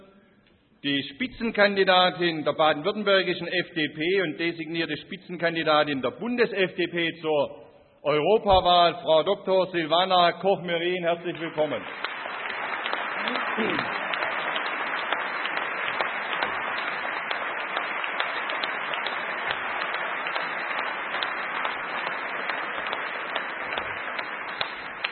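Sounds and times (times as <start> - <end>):
speech: 0.8 - 12.1, 13.2 - 14.0
audience applause: 11.3 - 25.0.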